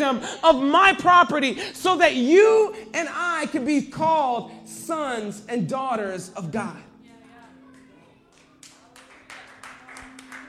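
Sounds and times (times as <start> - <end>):
speech: 0.0 - 6.9
scattered audience clapping: 7.4 - 10.4.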